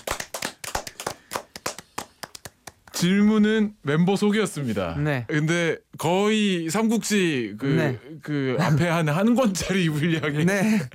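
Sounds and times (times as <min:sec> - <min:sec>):
small group of audience clapping: 0:00.0 - 0:03.0
speech: 0:03.0 - 0:10.9.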